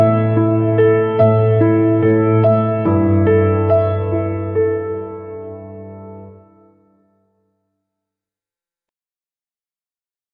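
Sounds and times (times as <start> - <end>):
AI-generated piano: 0.0 - 7.5.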